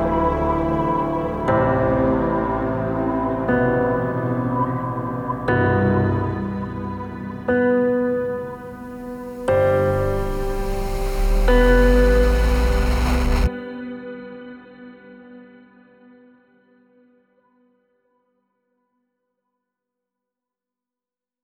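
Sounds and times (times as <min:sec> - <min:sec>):
atmospheric piano: 0:00.0 - 0:15.3.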